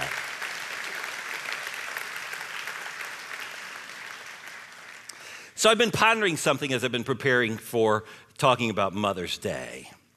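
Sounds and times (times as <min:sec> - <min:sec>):
audience applause: 0:00.0 - 0:05.4
speech: 0:05.6 - 0:10.0.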